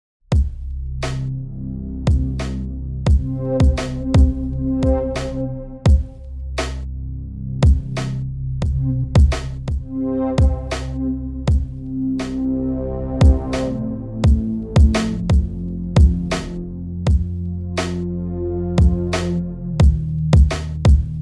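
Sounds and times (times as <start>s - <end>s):
dark beat: 2.1s - 6.9s, 7.6s - 12.5s, 13.2s - 18.1s, 18.8s - 21.2s.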